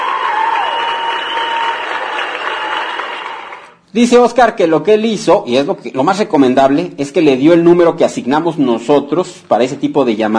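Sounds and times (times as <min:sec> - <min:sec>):
crowd applause: 0:00.0 - 0:03.8
speech: 0:03.9 - 0:10.3.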